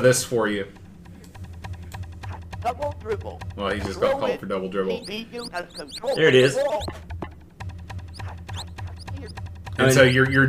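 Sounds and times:
speech: 0.0s - 0.8s, 2.6s - 7.2s, 9.2s - 10.4s
low pulsing thud: 0.0s - 10.1s
video game sneaker squeaks on a basketball court: 5.0s - 7.0s, 8.0s - 9.8s.

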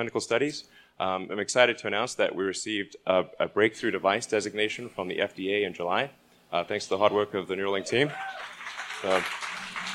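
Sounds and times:
speech: 0.0s - 9.4s
audience clapping: 8.1s - 9.9s.

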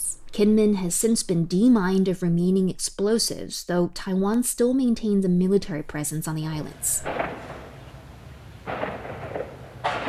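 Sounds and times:
low steady hiss: 0.0s - 10.0s
speech: 0.4s - 7.5s
artillery practice cracks at an active military base on Kinmen island: 7.0s - 10.0s.

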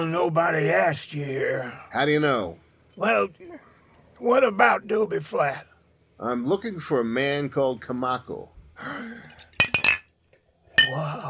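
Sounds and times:
speech: 0.0s - 9.4s, 10.9s - 11.2s
glass bottle nearly smashing, clinking: 9.5s - 10.1s, 10.8s - 11.2s.

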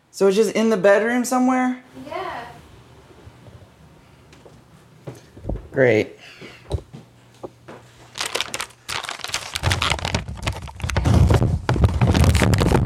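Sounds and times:
speech: 0.2s - 2.5s, 5.8s - 6.4s
plastic dog treats bag crinkling: 8.0s - 12.8s.

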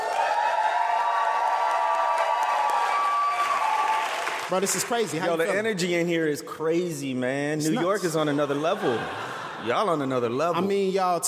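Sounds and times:
large live crowd cheering with whoops and shouts: 0.0s - 5.0s
large live crowd applauding: 0.0s - 5.7s
speech: 4.5s - 11.2s
laughter: 7.7s - 10.9s.

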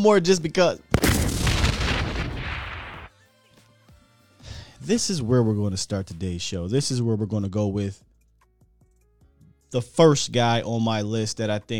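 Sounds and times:
speech: 0.0s - 0.9s, 4.8s - 8.1s, 9.7s - 11.7s
bomb explosion sound effect: 0.9s - 3.1s.

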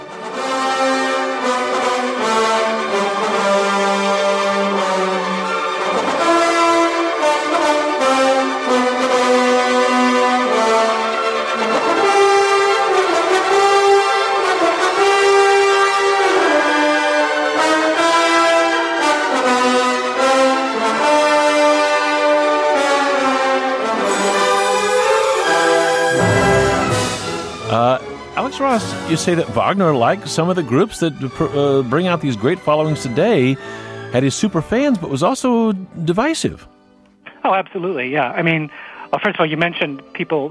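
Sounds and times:
full orchestra playing: 0.0s - 30.6s
speech: 29.2s - 36.7s, 37.5s - 40.4s.

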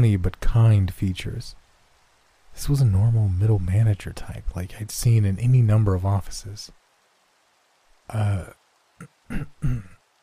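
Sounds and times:
speech: 0.0s - 1.6s, 2.6s - 6.8s, 8.1s - 10.0s
person coughing: 9.0s - 10.0s.

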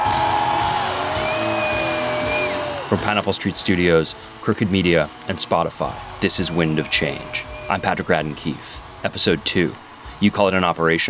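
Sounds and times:
huge stadium crowd roaring and cheering: 0.0s - 10.8s
high sliding whistle-like tones: 1.1s - 3.0s, 6.0s - 8.3s
speech: 2.9s - 11.0s.

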